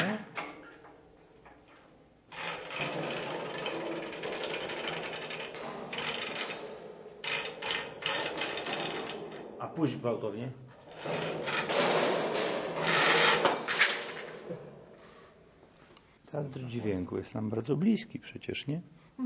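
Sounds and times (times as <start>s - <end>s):
stage sound effect imitating an anchor hauled from water, ratcheting and grinding: 2.3s - 9.7s, 10.8s - 14.4s
speech: 9.8s - 11.6s, 16.3s - 19.2s.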